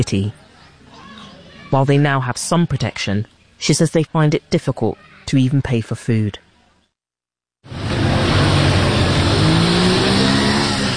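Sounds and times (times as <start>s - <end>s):
speech: 0.0s - 0.4s, 1.7s - 6.4s
motorbike engine revving: 7.7s - 10.9s.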